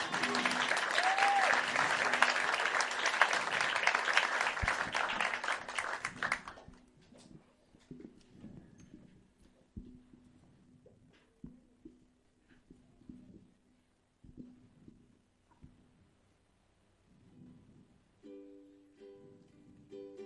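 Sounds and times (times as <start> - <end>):
crowd clapping: 0.0 - 6.8.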